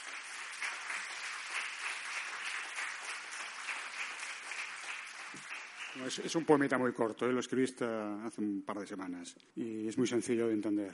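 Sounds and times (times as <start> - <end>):
audience applause: 0.0 - 6.6
speech: 6.0 - 10.9.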